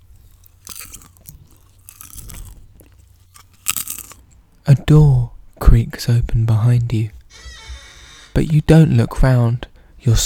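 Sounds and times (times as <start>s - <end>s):
eating popcorn: 0.0s - 5.3s
speech: 4.7s - 7.2s, 8.4s - 10.2s.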